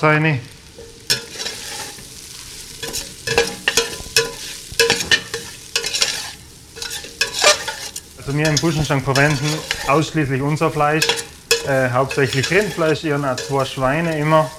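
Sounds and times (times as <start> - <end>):
speech: 0.0 - 0.5, 8.3 - 14.5
onions and garlic frying: 0.0 - 14.5
onions and garlic being stirred: 0.6 - 14.5.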